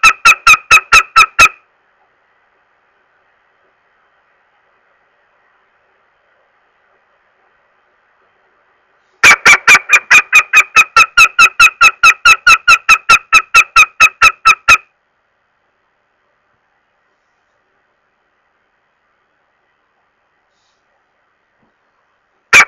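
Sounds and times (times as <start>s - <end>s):
northern goshawk uttering harsh nasal kek calls: 0.0s - 1.6s, 9.2s - 14.9s.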